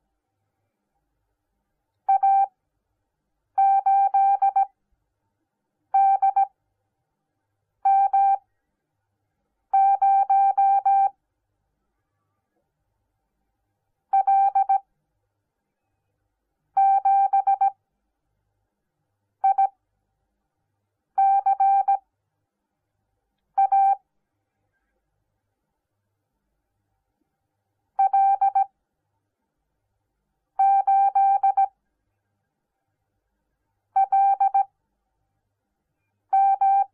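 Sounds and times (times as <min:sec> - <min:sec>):
morse code beeps: 0:02.1 - 0:02.5, 0:03.6 - 0:04.7, 0:06.0 - 0:06.5, 0:07.9 - 0:08.4, 0:09.8 - 0:11.1, 0:14.2 - 0:14.8, 0:16.8 - 0:17.8, 0:19.4 - 0:19.7, 0:21.2 - 0:22.0, 0:23.6 - 0:24.0, 0:28.0 - 0:28.7, 0:30.6 - 0:31.7, 0:34.0 - 0:34.7, 0:36.3 - 0:36.9.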